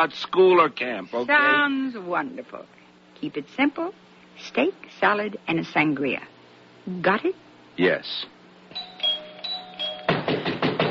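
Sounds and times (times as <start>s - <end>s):
speech: 0.0s - 8.3s
pounding on a door: 10.1s - 10.8s.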